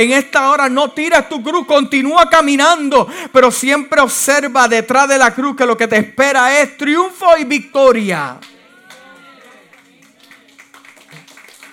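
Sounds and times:
speech: 0.0 - 8.5
audience clapping: 8.4 - 11.7.

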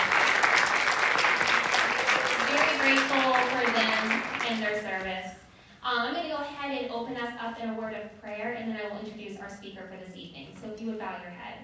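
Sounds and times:
audience applause: 0.0 - 5.0
speech: 4.5 - 11.6.

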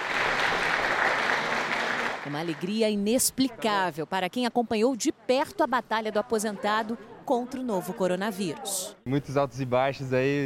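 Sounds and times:
applause: 0.0 - 3.1
speech: 2.3 - 10.4.

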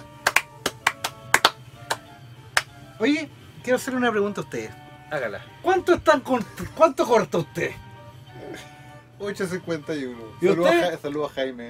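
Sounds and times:
applause: 0.0 - 2.7
speech: 3.0 - 7.8, 8.6 - 11.6.

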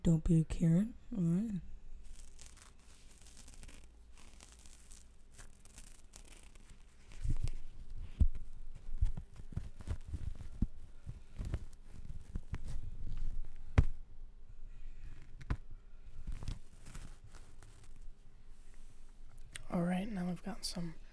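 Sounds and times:
speech: 0.1 - 1.7, 20.6 - 21.0
face mask being handled, crinkling: 1.9 - 14.0, 15.1 - 18.2.

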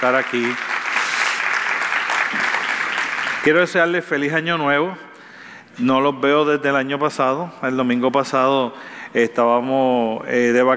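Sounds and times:
speech: 0.0 - 0.7, 3.4 - 5.1, 5.8 - 10.7
audience applause: 0.0 - 3.4.

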